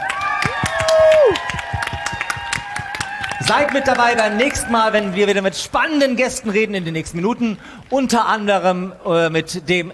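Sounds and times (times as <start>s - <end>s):
loud whoop: 0.0s - 4.7s
voices cheering: 0.0s - 5.4s
live audience clapping: 0.0s - 6.9s
speech: 3.5s - 9.9s.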